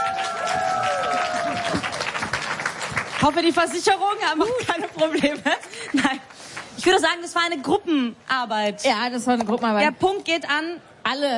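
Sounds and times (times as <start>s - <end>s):
crowd applause: 0.0s - 3.8s
speech: 3.2s - 11.3s.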